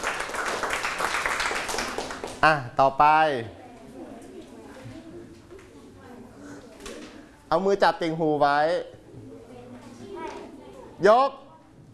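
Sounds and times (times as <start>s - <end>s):
group clapping for a classmate: 0.0s - 2.6s
speech: 2.4s - 3.6s, 7.5s - 9.3s, 11.0s - 11.4s.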